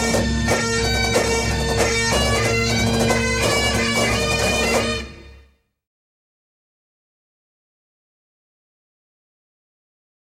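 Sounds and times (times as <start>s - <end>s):
Highland bagpipes: 0.0s - 5.5s.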